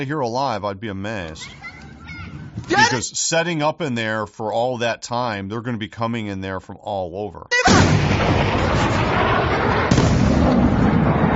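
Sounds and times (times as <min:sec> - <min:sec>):
speech: 0:00.0 - 0:01.7, 0:02.6 - 0:09.8
incoming missile launched from a ship roaring: 0:07.7 - 0:11.3.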